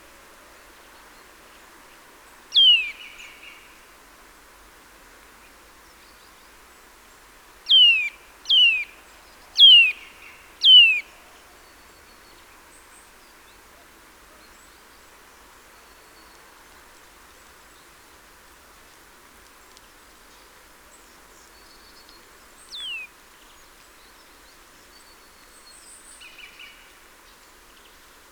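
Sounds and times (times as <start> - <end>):
Eurasian nuthatch Sitta europaea calls: 2.6 - 3.0, 7.7 - 8.9, 9.6 - 10.0, 10.6 - 11.1, 22.7 - 23.1.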